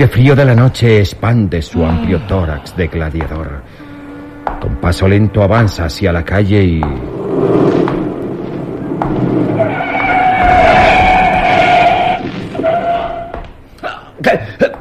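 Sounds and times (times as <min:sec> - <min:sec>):
speech: 0:00.0 - 0:03.8, 0:04.6 - 0:08.0, 0:14.2 - 0:14.7
car skidding to a stop: 0:07.1 - 0:13.3.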